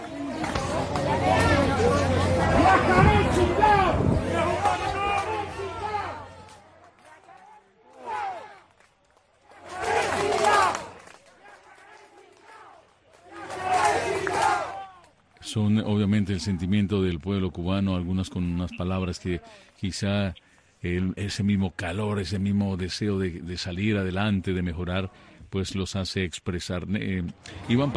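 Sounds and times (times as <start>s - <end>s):
crowd shouting at outdoor gathering: 0.0s - 15.3s
speech: 15.6s - 27.9s.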